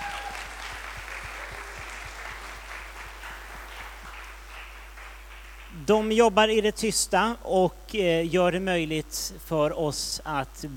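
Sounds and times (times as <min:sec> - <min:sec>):
audience applause for interpreters: 0:00.0 - 0:05.8
speech: 0:05.8 - 0:10.7.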